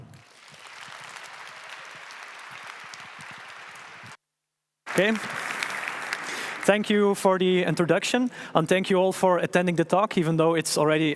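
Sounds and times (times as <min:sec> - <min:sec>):
audience applause: 0:00.0 - 0:04.2, 0:04.9 - 0:07.6
speech: 0:05.0 - 0:05.4, 0:06.6 - 0:11.1.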